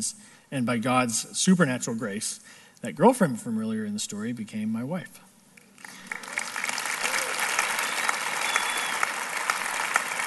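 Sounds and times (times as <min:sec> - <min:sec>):
speech: 0:00.0 - 0:05.3
audience clapping: 0:05.6 - 0:10.2.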